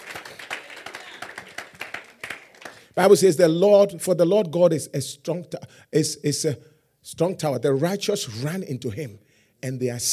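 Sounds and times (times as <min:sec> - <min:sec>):
church congregation clapping in praise during a sermon: 0:00.0 - 0:03.0
speech: 0:03.0 - 0:10.1.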